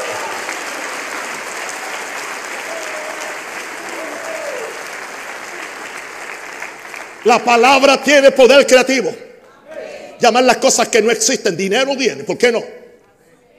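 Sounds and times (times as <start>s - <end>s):
audience applause: 0.0s - 8.2s
speech: 7.2s - 9.2s, 10.2s - 12.8s.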